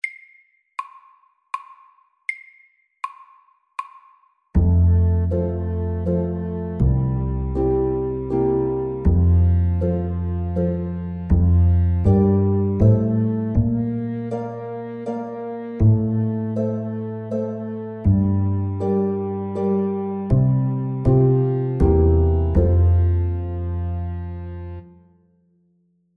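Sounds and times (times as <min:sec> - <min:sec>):
slow summer waltz: 0:04.6 - 0:25.0.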